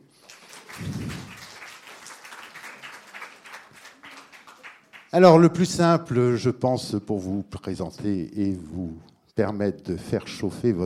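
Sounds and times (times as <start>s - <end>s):
audience applause: 0.0s - 5.1s
speech: 5.1s - 10.8s.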